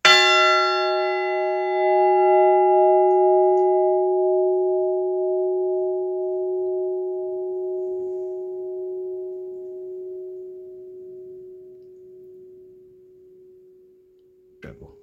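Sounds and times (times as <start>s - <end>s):
bells of Sussex: 0.0s - 11.3s.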